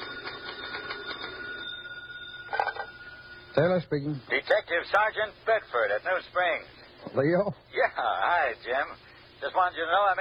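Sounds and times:
telephone ringing: 0:00.0 - 0:03.8
low hum: 0:00.0 - 0:04.3
speech: 0:03.6 - 0:10.1.

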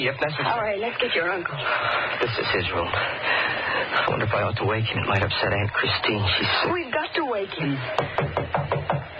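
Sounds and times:
speech: 0:00.0 - 0:08.6
knocking on a bedroom door: 0:08.0 - 0:09.1.

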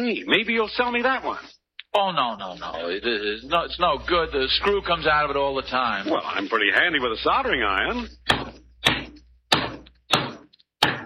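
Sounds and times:
speech: 0:00.0 - 0:09.0
hammer blows on nails: 0:08.2 - 0:11.0.

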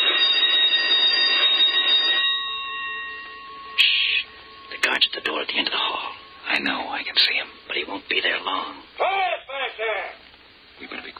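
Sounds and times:
electric bell ringing: 0:00.0 - 0:08.7
speech: 0:06.6 - 0:09.4.

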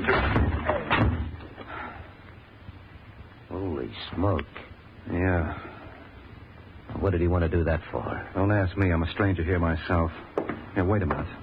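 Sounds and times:
speech: 0:00.0 - 0:00.4, 0:04.2 - 0:05.7, 0:07.0 - 0:11.4
door being forced open with shoulder: 0:00.0 - 0:01.4.

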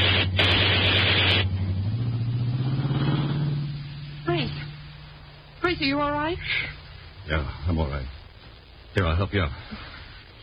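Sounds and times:
car engine behaving oddly: 0:00.0 - 0:08.3
speech: 0:05.8 - 0:08.2, 0:09.0 - 0:09.9.

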